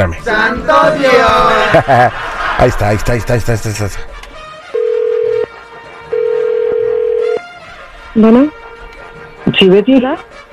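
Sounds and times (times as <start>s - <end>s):
speech: 0.0s - 4.1s, 8.2s - 8.6s, 9.4s - 10.5s
laughter: 1.1s - 3.5s
telephone ringing tone: 4.8s - 5.5s, 6.1s - 7.4s.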